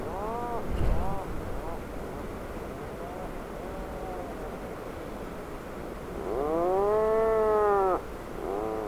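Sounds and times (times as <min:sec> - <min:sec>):
Atlantic puffin groaning calls: 0:00.0 - 0:01.9, 0:03.0 - 0:04.4, 0:06.2 - 0:08.8.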